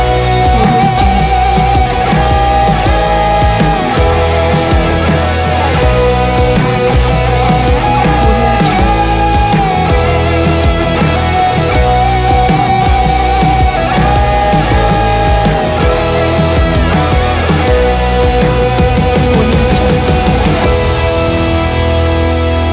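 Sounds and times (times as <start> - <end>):
guitar riffs: 0.0 - 22.7.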